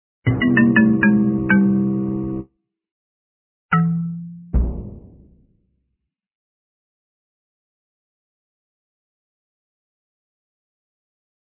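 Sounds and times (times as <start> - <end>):
game over jingle: 0.3 - 2.4.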